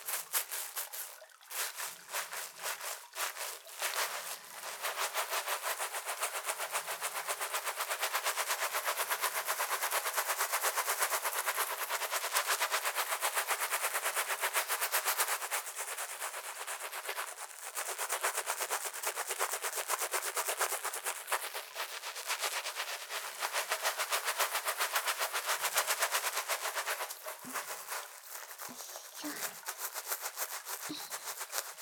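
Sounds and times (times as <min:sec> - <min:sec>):
scrubbing soapy lather while washing: 0:00.0 - 0:31.8
faint murmuring voice: 0:28.7 - 0:29.6.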